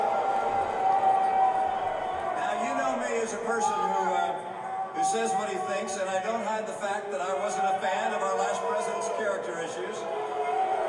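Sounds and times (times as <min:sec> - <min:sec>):
crowd booing at the Utah Republican Party organizing convention: 0:00.0 - 0:06.2, 0:07.3 - 0:10.8.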